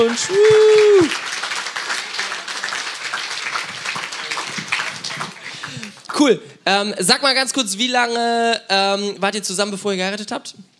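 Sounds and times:
speech: 0.0s - 1.2s, 6.2s - 10.7s
applause: 0.0s - 6.3s.

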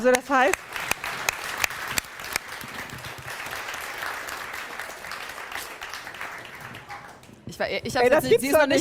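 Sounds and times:
speech: 0.0s - 0.7s, 7.6s - 8.7s
audience applause: 0.5s - 7.4s.

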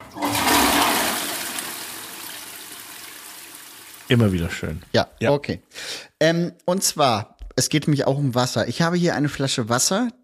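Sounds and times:
toilet flushing: 0.0s - 4.8s
speech: 4.1s - 10.2s.

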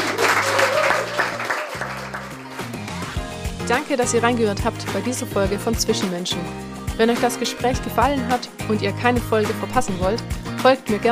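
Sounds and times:
audience applause: 0.0s - 3.1s
speech: 3.7s - 11.1s.

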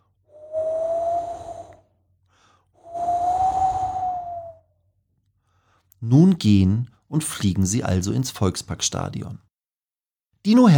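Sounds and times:
gusts of cold wind: 0.4s - 1.8s, 2.9s - 4.6s
speech: 6.0s - 9.5s, 10.4s - 10.7s.

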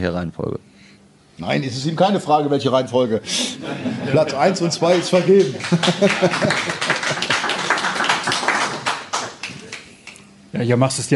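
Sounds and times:
speech: 0.0s - 0.7s, 1.4s - 7.3s, 10.5s - 11.1s
laughter: 3.3s - 8.8s
applause: 4.8s - 10.2s.

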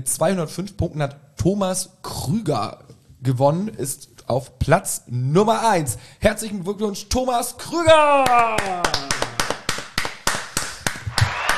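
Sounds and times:
speech: 0.0s - 9.1s
applause: 8.2s - 11.5s.

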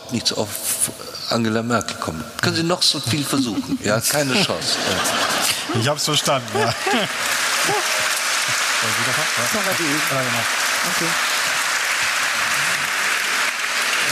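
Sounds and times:
speech: 0.1s - 8.0s, 8.8s - 11.4s
laughter: 3.0s - 9.1s
audience applause: 4.2s - 14.1s.

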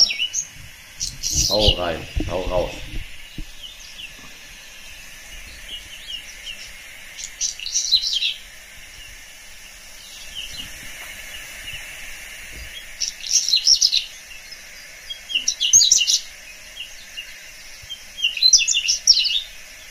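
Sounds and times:
Braunkehlchen singing: 0.0s - 19.8s
speech: 1.5s - 3.0s.

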